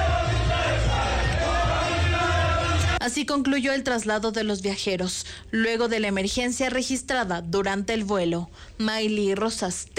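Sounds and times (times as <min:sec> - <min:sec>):
crowd applauding arriving passengers: 0:00.0 - 0:03.0
speech: 0:03.1 - 0:09.9.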